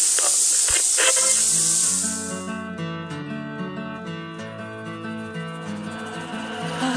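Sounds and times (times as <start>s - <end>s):
shower spraying water: 0.0s - 2.5s
music from a Bluetooth speaker: 0.1s - 6.9s.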